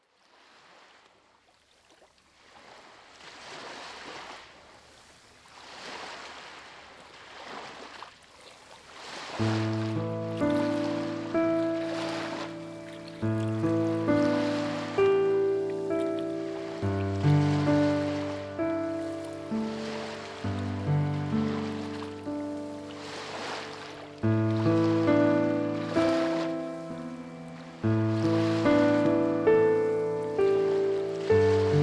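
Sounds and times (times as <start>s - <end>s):
ocean waves: 0.2s - 1.0s, 2.3s - 31.8s
melodies: 9.4s - 31.8s.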